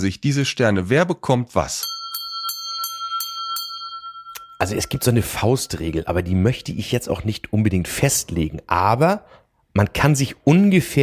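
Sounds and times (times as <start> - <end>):
speech: 0.0 - 2.0, 4.6 - 11.0
bright ringing bell jingle for a know-it-all alarm: 1.8 - 6.3.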